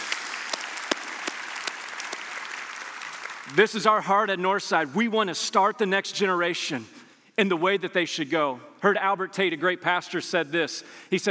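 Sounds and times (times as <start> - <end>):
audience cheering: 0.0 - 3.5
speech: 3.5 - 11.3.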